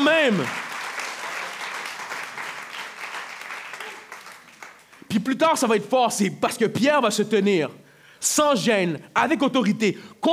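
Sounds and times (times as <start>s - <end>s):
speech: 0.0s - 0.6s, 5.2s - 10.3s
audience applauding in church: 0.0s - 5.1s.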